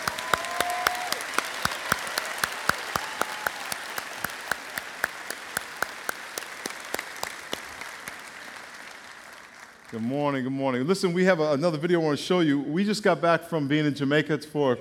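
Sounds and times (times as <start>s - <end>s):
audience applause: 0.0s - 10.2s
speech: 9.9s - 14.8s.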